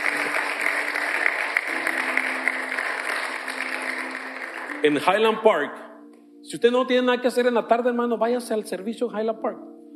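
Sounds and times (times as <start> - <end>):
audience applauding: 0.0 - 5.2
speech: 4.8 - 5.8, 6.5 - 9.7.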